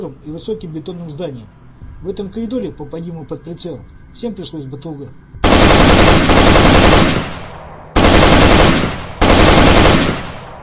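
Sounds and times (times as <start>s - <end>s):
speech: 0.0s - 5.3s
automatic rifle fire bursts: 5.4s - 10.6s.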